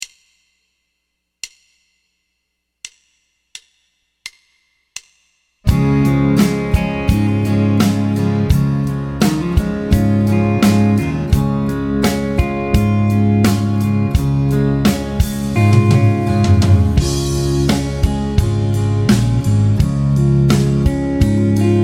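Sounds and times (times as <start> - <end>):
major triad vamp in D flat: 5.7 - 21.8.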